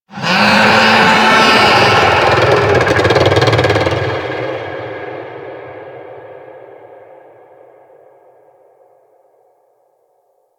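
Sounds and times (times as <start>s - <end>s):
infested golem vocal attack: 0.1s - 4.3s.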